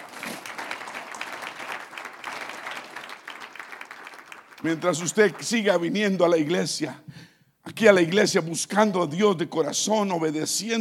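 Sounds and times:
audience applause: 0:00.0 - 0:05.8
speech: 0:04.6 - 0:07.1, 0:07.8 - 0:10.7.

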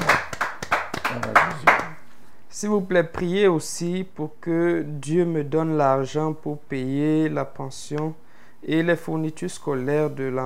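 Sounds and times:
group clapping in a church radio studio: 0:00.0 - 0:02.0
speech: 0:02.6 - 0:10.4.

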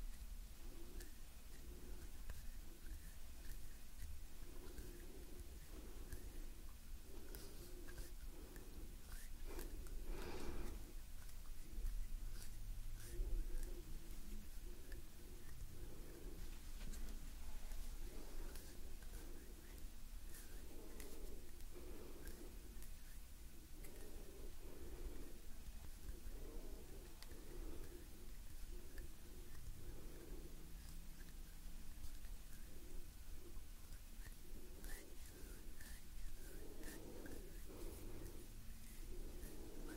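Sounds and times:
quiet breathing: 0:00.0 - 0:39.9
soft hand movements and rustling: 0:00.7 - 0:30.9, 0:34.3 - 0:39.9.

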